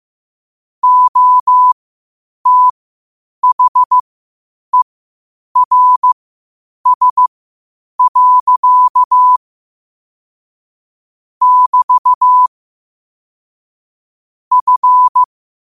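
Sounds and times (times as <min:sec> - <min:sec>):
morse code at 5 wpm: 0:00.8 - 0:01.8, 0:02.5 - 0:02.7, 0:03.4 - 0:04.0, 0:05.6 - 0:06.2, 0:06.9 - 0:07.3, 0:08.0 - 0:09.4, 0:11.4 - 0:12.5, 0:14.5 - 0:15.3.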